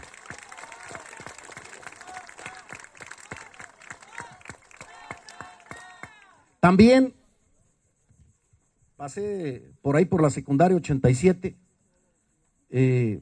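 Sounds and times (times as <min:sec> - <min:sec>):
crowd applause: 0:00.0 - 0:06.4
speech: 0:06.7 - 0:07.2, 0:09.0 - 0:11.6, 0:12.7 - 0:13.1.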